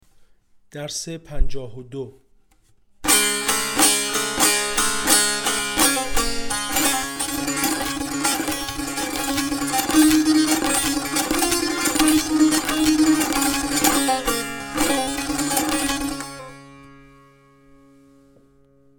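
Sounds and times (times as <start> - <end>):
tanbur practice: 3.0 - 17.6.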